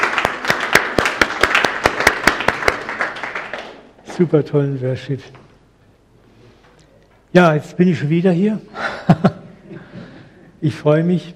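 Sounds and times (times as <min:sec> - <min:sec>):
applause for a worship band after a prayer: 0:00.0 - 0:04.1
speech: 0:04.2 - 0:05.4, 0:07.3 - 0:09.4, 0:10.6 - 0:11.3.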